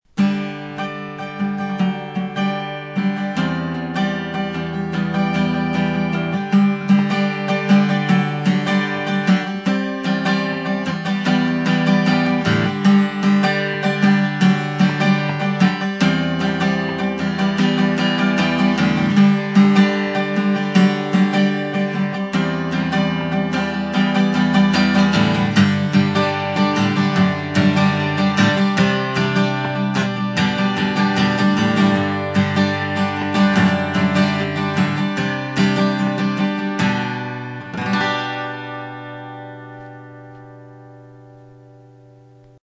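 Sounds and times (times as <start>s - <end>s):
guitar: 0.0s - 42.6s.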